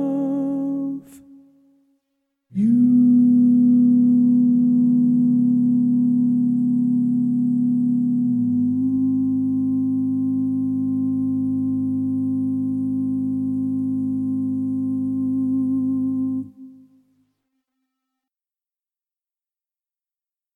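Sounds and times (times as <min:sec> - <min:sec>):
tenor singing: 0:00.0 - 0:01.5, 0:02.5 - 0:16.8.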